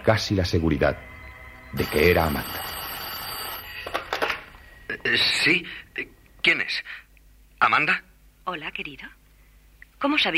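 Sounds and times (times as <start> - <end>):
speech: 0.0 - 2.8, 4.9 - 7.0, 7.6 - 9.2, 10.0 - 10.3
telephone ringing: 1.0 - 5.0.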